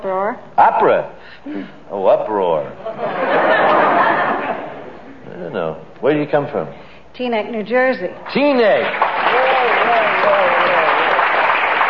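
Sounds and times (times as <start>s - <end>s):
speech: 0.0s - 3.4s, 5.4s - 9.1s
laughter: 2.8s - 5.1s
audience applause: 8.3s - 11.8s.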